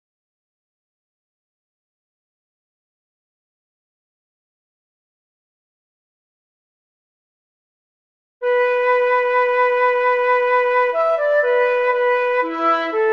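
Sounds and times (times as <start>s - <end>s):
flute: 8.4s - 13.1s.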